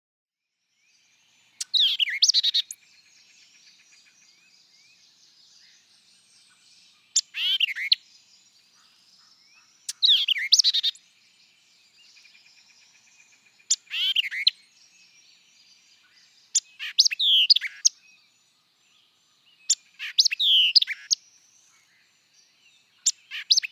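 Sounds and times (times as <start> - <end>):
white-eyed vireo song of sharp chips and slurred whistles: 1.6 - 2.8, 7.1 - 8.1, 9.8 - 11.0, 13.7 - 15.2, 16.5 - 18.0, 19.7 - 21.2, 23.0 - 23.6.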